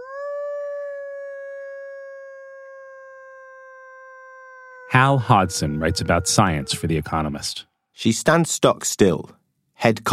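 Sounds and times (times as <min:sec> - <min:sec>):
woman howling to imitate a wolf: 0:00.0 - 0:07.3
speech: 0:04.9 - 0:10.1.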